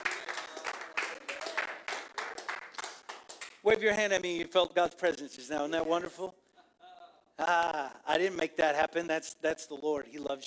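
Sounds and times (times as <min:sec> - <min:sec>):
audience clapping hands: 0:00.0 - 0:03.6
speech: 0:03.6 - 0:06.4, 0:07.4 - 0:10.4.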